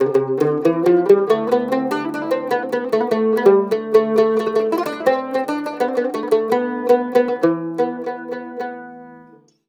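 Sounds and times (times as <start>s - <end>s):
cumbus playing Mediterranean traditional music: 0.0s - 9.5s.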